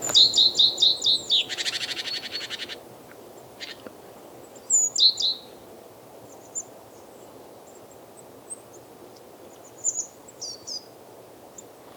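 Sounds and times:
great tit calling: 0.0 - 1.6.

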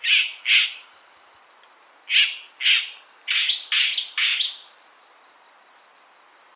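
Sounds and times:
bird chirping calls: 0.0 - 1.0, 2.1 - 4.8.

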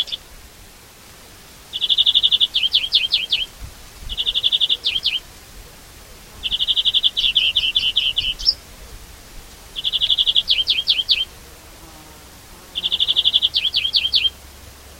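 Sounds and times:
European greenfinch trilling: 0.0 - 0.2, 1.7 - 3.5, 4.1 - 5.2, 6.4 - 8.6, 9.8 - 11.3, 12.7 - 14.4.

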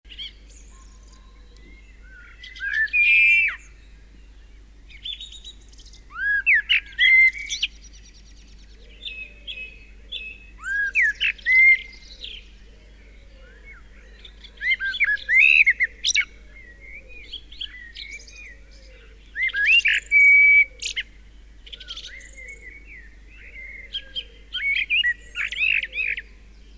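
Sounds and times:
common blackbird song: 0.1 - 26.7.

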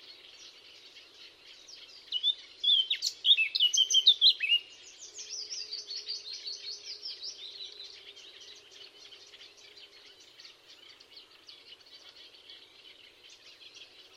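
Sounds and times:
Eurasian blackcap singing, Sylvia atricapilla: 0.0 - 14.1.

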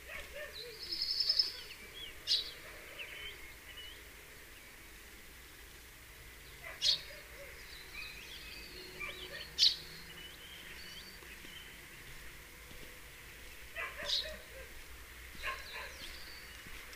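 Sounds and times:
Passer domesticus house sparrow chirping: 0.1 - 4.1, 6.5 - 12.1, 13.5 - 16.8.

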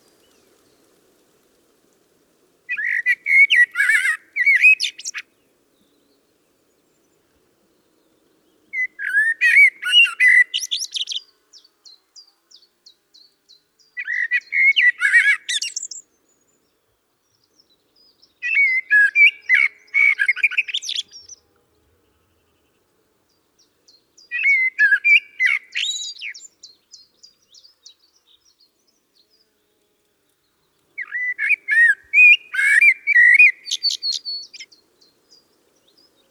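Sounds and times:
common blackbird singing: 2.7 - 6.2, 6.9 - 16.6, 17.2 - 21.4, 23.3 - 29.5, 30.9 - 36.2.

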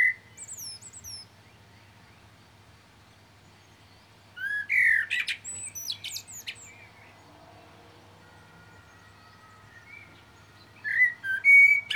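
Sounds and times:
common blackbird Turdus merula whistled warbling song with shrill twitters: 0.0 - 1.3, 4.4 - 6.8, 10.8 - 11.9.

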